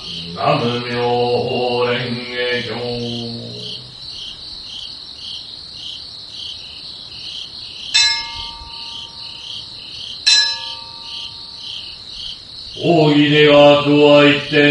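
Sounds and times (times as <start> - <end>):
insects chirping: 0.0 - 14.6
speech: 0.4 - 3.6, 12.8 - 14.6.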